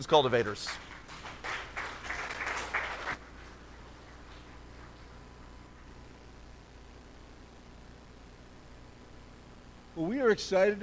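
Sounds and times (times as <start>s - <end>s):
speech: 0.0s - 0.9s, 10.0s - 10.8s
audience clapping to welcome guests: 0.0s - 5.1s.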